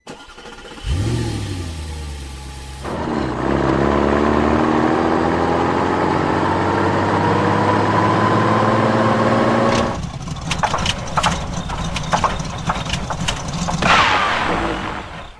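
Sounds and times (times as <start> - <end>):
car engine failing: 0.0 - 15.3.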